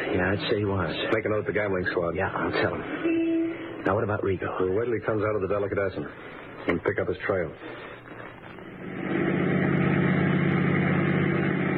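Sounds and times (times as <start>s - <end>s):
speech: 0.3s - 7.9s
car engine drone while cruising: 8.5s - 11.7s.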